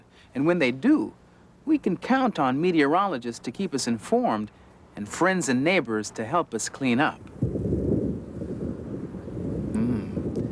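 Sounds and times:
speech: 0.4 - 7.6
steady loud gusting wind before rain: 3.9 - 10.5
wind whistling: 7.1 - 10.5.

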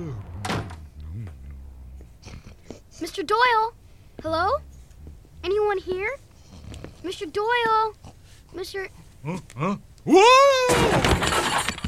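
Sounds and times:
speech: 3.0 - 4.7, 5.4 - 6.2, 7.0 - 11.0
person yelling: 10.1 - 10.9
breakaway chair breaking apart: 10.7 - 11.8.

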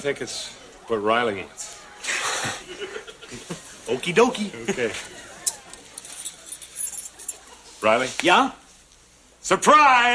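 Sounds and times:
speech: 0.0 - 1.8, 2.4 - 5.2, 7.8 - 8.6, 9.4 - 10.1
laughter: 1.7 - 5.9
car keys jangling as they are handed over: 5.4 - 7.6.

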